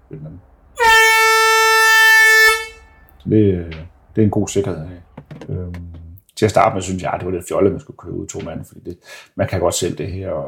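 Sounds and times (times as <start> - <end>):
speech: 0.1 - 0.6, 3.2 - 10.4
special warning horn blast: 0.8 - 3.2.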